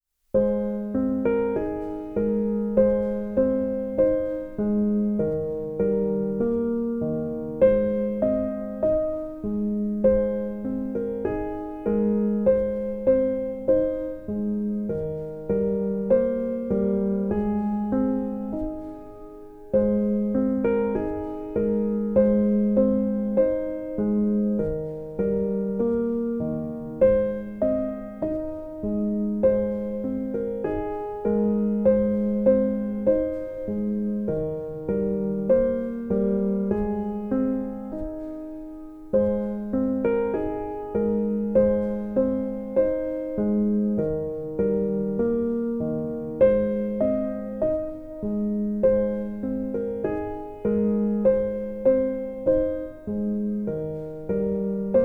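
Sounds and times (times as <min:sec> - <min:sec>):
piano music: 0:00.3 - 0:55.0.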